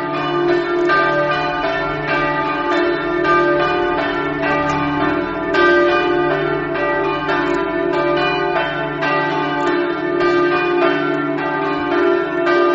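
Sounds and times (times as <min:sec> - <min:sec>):
bells ringing: 0:00.0 - 0:12.7.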